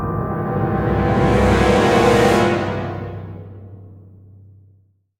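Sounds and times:
game over stinger: 0.1 - 3.6.

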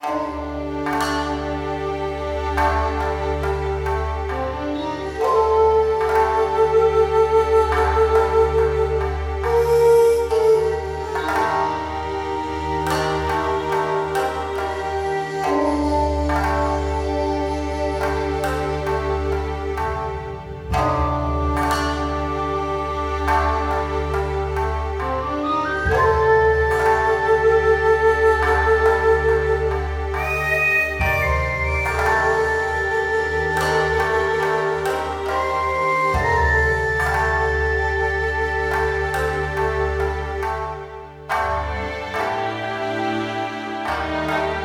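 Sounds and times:
shop background music: 0.0 - 44.6.

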